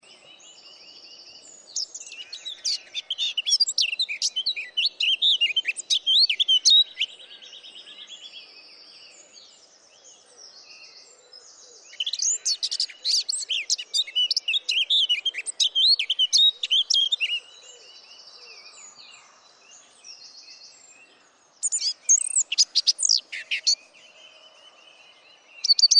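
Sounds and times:
Eurasian blackcap warbling song: 1.5s - 7.2s, 11.8s - 17.6s, 21.6s - 24.2s, 25.5s - 25.9s.

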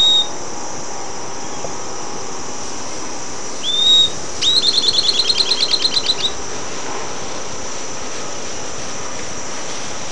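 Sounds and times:
bird whistle and notes: 0.0s - 0.4s, 3.5s - 6.4s
background hiss: 0.0s - 10.1s.

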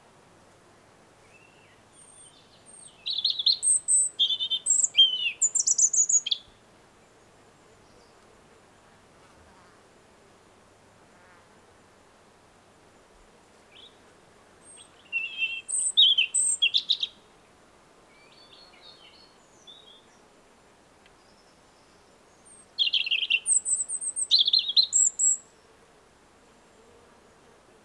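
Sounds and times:
European robin song: 1.3s - 6.5s, 14.6s - 17.2s, 21.2s - 25.5s.

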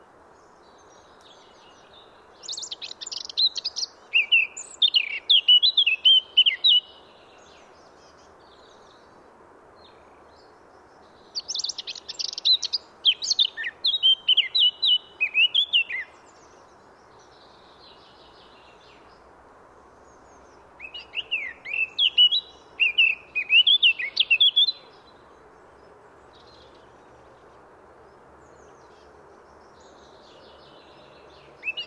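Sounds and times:
Eurasian blackcap singing: 2.4s - 7.0s, 11.4s - 16.1s, 20.8s - 24.8s, 31.5s - 31.8s.

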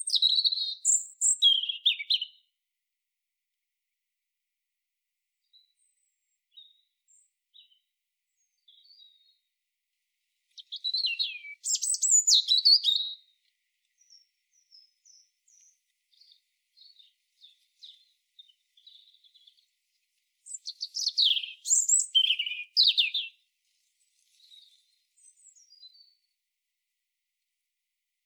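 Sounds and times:
European robin song: 0.0s - 2.5s, 5.5s - 9.5s, 10.5s - 26.4s.

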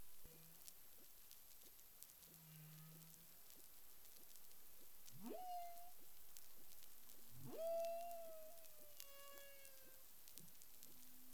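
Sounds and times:
humpback whale low droning moans: 5.2s - 6.0s, 7.4s - 10.0s.

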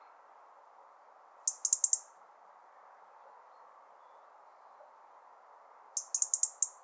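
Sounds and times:
background hiss: 0.0s - 6.8s
European robin ticking calls: 1.5s - 2.1s, 6.0s - 6.8s.

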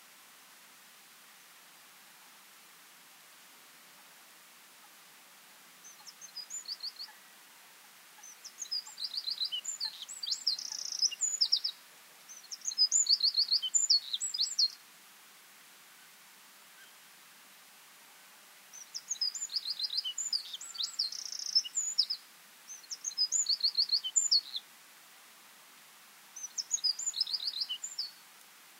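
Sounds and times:
Eurasian wren Troglodytes troglodytes singing: 8.2s - 11.7s, 12.3s - 14.8s, 18.7s - 24.6s, 26.4s - 28.2s.

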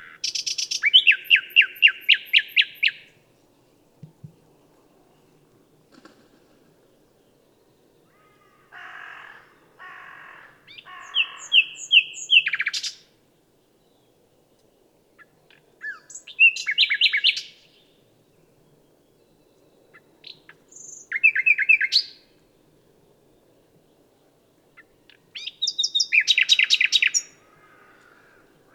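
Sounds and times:
common nightingale singing: 0.0s - 3.2s, 10.7s - 13.0s, 14.6s - 17.9s, 19.2s - 22.3s, 24.7s - 27.4s.

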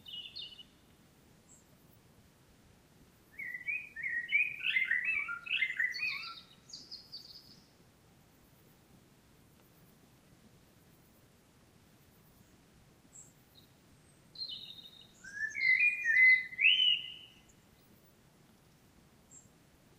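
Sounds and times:
common blackbird song: 0.0s - 0.9s, 3.3s - 7.8s, 12.3s - 18.1s, 19.3s - 19.5s.

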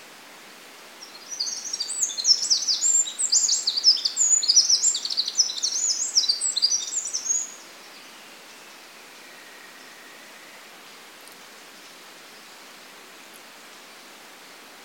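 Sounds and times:
faint hiss: 0.0s - 14.8s
Eurasian wren singing: 1.0s - 10.2s.

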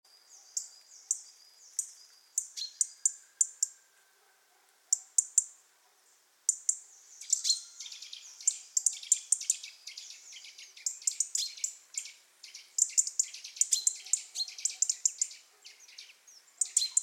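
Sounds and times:
European robin calls tsee notes and ticks: 0.1s - 17.0s.

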